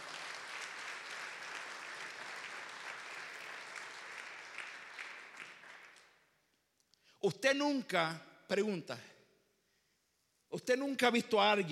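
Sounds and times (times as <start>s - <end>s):
audience applauding: 0.0s - 6.2s
speech: 7.2s - 9.1s, 10.5s - 11.7s.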